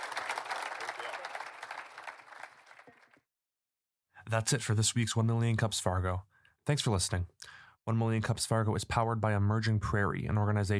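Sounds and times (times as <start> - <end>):
audience applause: 0.0 - 3.2
speech: 4.3 - 10.7.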